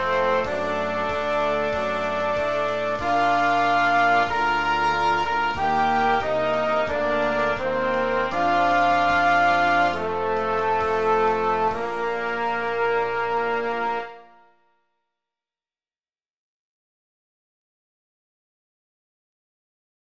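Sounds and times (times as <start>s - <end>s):
national anthem music playback: 0.0s - 14.6s.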